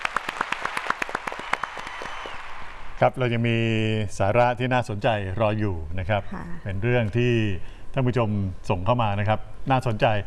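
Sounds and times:
group applause: 0.0s - 2.8s
speech: 3.0s - 10.2s.

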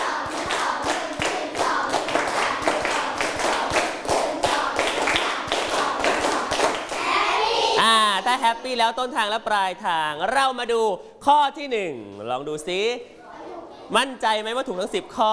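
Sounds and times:
hand clapping: 0.0s - 7.1s
speech: 8.4s - 13.2s, 13.9s - 15.3s.

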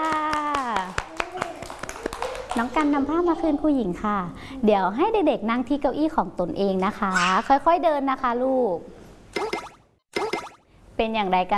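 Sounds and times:
children clapping for themselves: 0.0s - 3.1s
speech: 2.6s - 9.0s, 11.0s - 11.5s.

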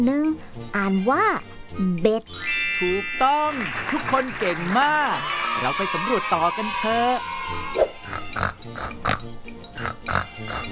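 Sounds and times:
speech: 0.0s - 7.9s, 8.7s - 10.7s
pig oinking: 8.0s - 10.7s.

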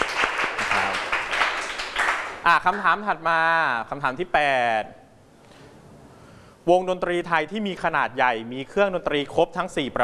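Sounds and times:
many hands clapping in a classroom music quiz: 0.0s - 2.9s
speech: 2.4s - 5.0s, 6.6s - 10.0s.

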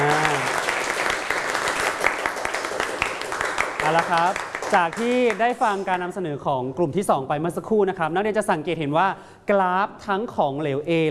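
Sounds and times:
students applauding a group presentation: 0.0s - 5.8s
speech: 4.1s - 11.1s.

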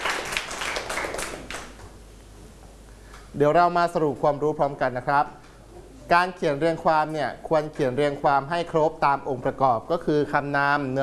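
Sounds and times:
students clapping for a classmate in a classroom: 0.0s - 1.9s
speech: 3.4s - 5.4s, 6.1s - 11.0s.

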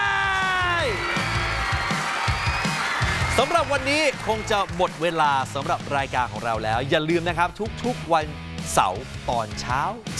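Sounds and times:
crowd cheering: 0.0s - 6.6s
audience applause: 0.3s - 6.5s
speech: 3.4s - 10.1s.

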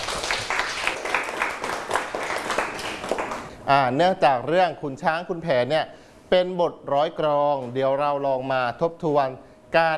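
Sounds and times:
students clapping for classmates: 0.0s - 3.5s
speech: 3.7s - 9.9s.

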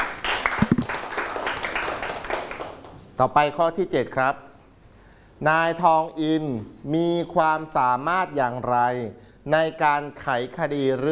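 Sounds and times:
audience applause: 0.0s - 2.9s
speech: 3.2s - 4.5s, 5.4s - 11.1s.

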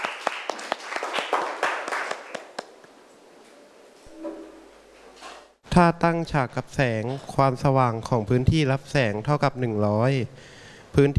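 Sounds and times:
students applauding: 0.0s - 2.9s
speech: 5.8s - 11.1s.

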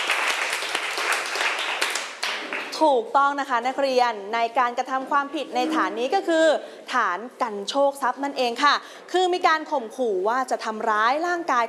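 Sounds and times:
classmates applauding a student who answered correctly: 0.0s - 2.7s
speech: 2.8s - 11.6s.

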